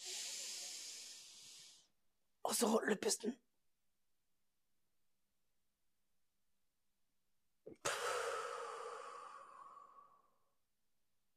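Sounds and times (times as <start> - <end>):
deep inhale through the nose: 0.0 - 1.9, 7.8 - 10.3
speech: 2.6 - 3.5.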